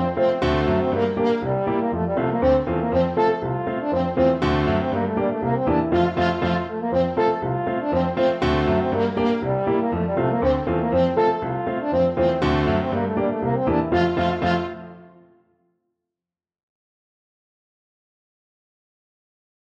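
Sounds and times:
French horn playing a Rheinlander polka: 0:00.0 - 0:15.2.

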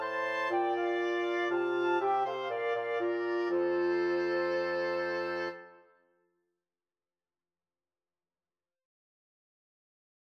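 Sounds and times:
flexible mixed ensemble of 4 players: 0:00.0 - 0:05.6.

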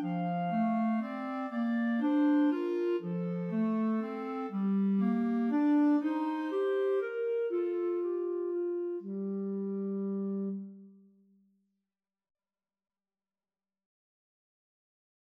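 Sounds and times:
clarinet duet: 0:00.0 - 0:11.0.

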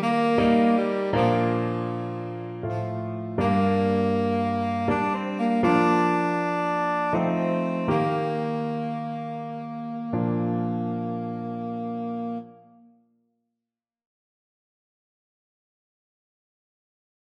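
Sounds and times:
tenor saxophone melody: 0:00.0 - 0:12.9.

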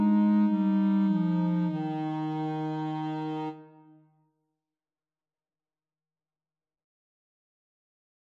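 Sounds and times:
clarinet: 0:00.0 - 0:04.0
saxophone: 0:00.0 - 0:04.0.

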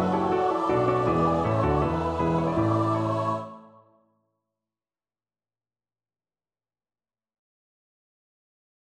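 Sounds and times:
choir singing: 0:00.0 - 0:04.0.

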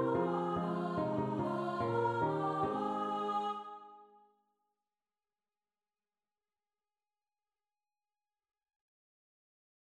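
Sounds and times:
choir singing: 0:00.0 - 0:04.2.

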